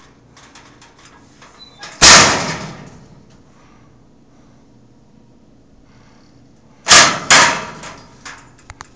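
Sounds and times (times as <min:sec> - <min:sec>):
locker slamming: 0:01.6 - 0:03.2, 0:06.9 - 0:08.6.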